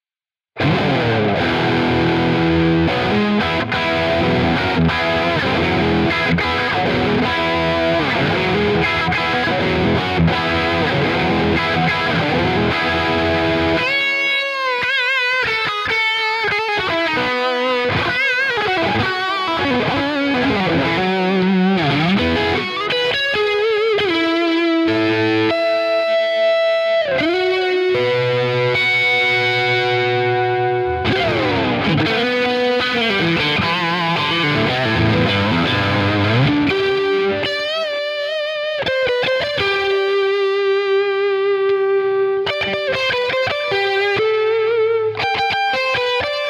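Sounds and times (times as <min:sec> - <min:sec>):
Ibanez QX54QM electric guitar beefy rhythm: 0:00.6 - 0:46.4.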